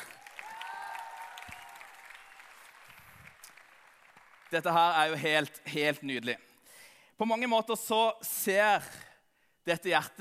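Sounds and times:
faint whoops: 0:00.0 - 0:02.6
audience clapping: 0:00.0 - 0:05.2
speech: 0:04.5 - 0:06.5, 0:07.2 - 0:09.0, 0:09.6 - 0:10.1.

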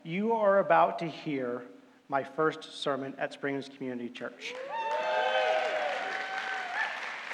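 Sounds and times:
speech: 0:00.1 - 0:04.8
audience clapping: 0:04.5 - 0:07.3
whoops and cheers: 0:04.5 - 0:07.3.

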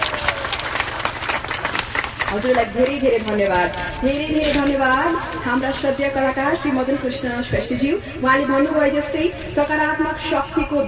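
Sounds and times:
audience applause for two departing guests at a community gathering: 0:00.0 - 0:03.0
speech: 0:02.3 - 0:10.8.

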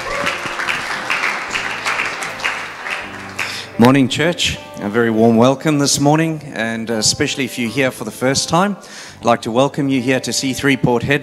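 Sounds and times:
church congregation applauding as the preacher comes up: 0:00.0 - 0:04.0
speech: 0:03.8 - 0:11.2.

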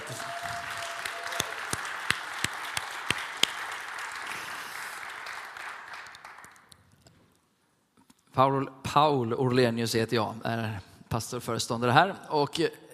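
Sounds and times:
audience applauding: 0:00.0 - 0:06.8
speech: 0:08.4 - 0:12.8.

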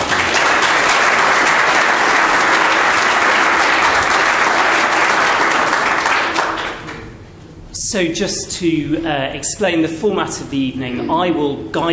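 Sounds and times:
audience round of applause: 0:00.0 - 0:07.0
speech: 0:07.9 - 0:11.9.

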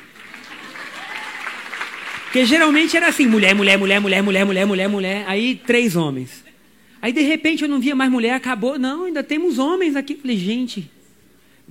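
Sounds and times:
audience applauding: 0:00.0 - 0:04.8
speech: 0:02.3 - 0:06.4, 0:07.0 - 0:11.0.

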